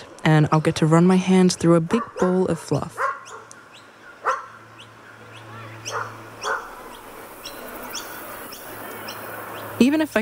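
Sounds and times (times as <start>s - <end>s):
speech: 0.2s - 3.0s, 9.9s - 10.1s
dogs barking at a dog park: 1.9s - 3.6s, 4.2s - 4.7s, 5.8s - 7.1s.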